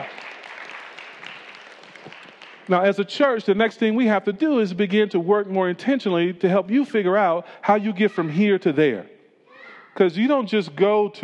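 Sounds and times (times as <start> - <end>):
audience clapping: 0.0 - 3.4
speech: 2.7 - 9.1, 10.0 - 11.2.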